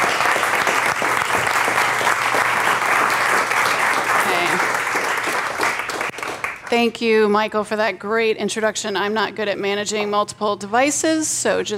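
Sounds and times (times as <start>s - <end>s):
audience applause: 0.0s - 6.7s
speech: 6.7s - 11.7s.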